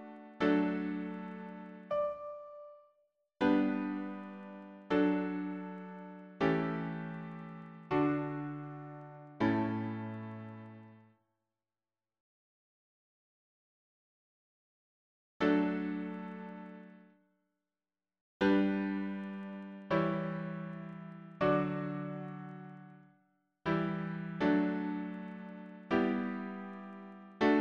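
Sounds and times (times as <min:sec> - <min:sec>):
piano harmony: 0:00.0 - 0:02.8, 0:03.4 - 0:11.0, 0:18.5 - 0:23.0, 0:23.7 - 0:27.5.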